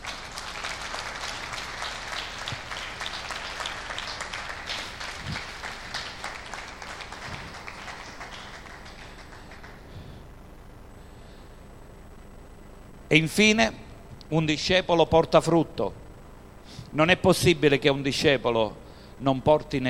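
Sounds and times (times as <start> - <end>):
audience applause: 0.0 - 10.2
speech: 13.1 - 16.0, 16.9 - 19.8.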